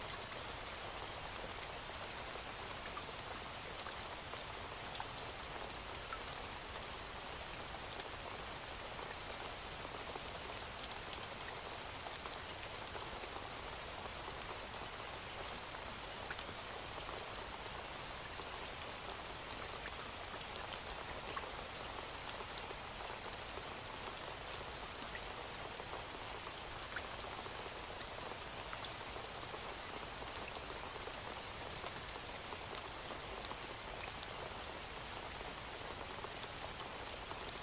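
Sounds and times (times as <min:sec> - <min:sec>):
steady rain falling: 0:00.0 - 0:37.6.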